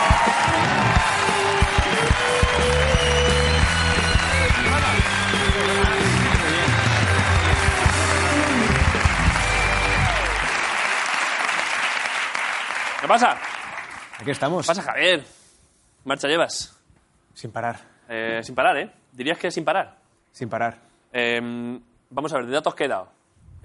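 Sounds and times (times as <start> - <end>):
audience applause: 0.0 - 14.4
speech: 13.1 - 13.5, 14.2 - 15.4, 16.0 - 16.8, 17.4 - 23.6.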